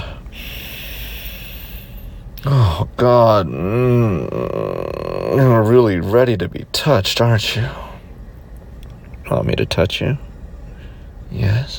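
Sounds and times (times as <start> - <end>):
person sniffing a scent through the nose: 0.0 - 2.1
steady low noise: 0.0 - 11.7
speech: 2.4 - 7.8, 9.3 - 10.3, 11.3 - 11.7.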